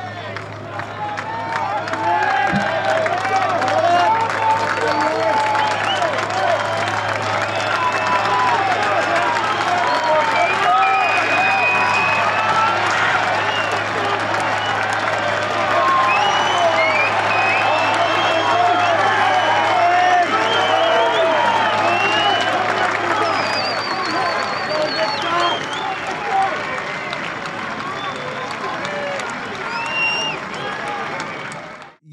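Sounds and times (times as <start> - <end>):
golf gallery applause on fairway: 0.0 - 32.0
cheers and whoops: 1.0 - 31.7.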